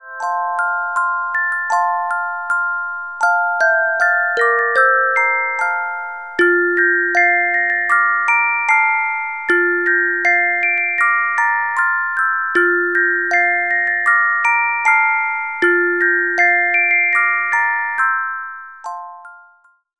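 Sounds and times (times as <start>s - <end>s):
carillon music box melodies: 0.0s - 19.9s.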